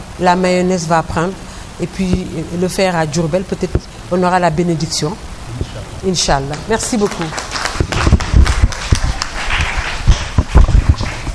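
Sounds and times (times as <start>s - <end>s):
speech: 0.2s - 5.3s, 6.0s - 7.5s
audience applause: 6.6s - 11.3s.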